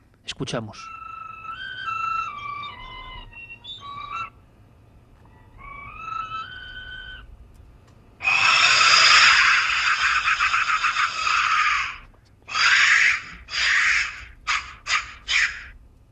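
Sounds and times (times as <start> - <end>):
clay skull-shaped death whistle being blown: 0.8 - 4.4, 5.4 - 7.3, 8.2 - 15.8
laughter: 9.0 - 12.0.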